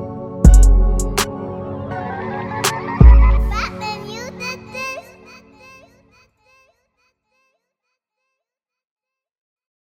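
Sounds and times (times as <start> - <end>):
instrumental music: 0.4 - 4.2.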